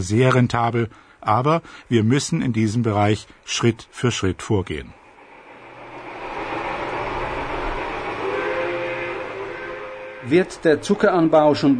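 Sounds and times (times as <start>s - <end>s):
speech: 0.0s - 5.0s, 10.2s - 11.7s
steam locomotive in sugarcane fields: 4.9s - 11.7s
thin high squealing tones: 5.0s - 11.7s.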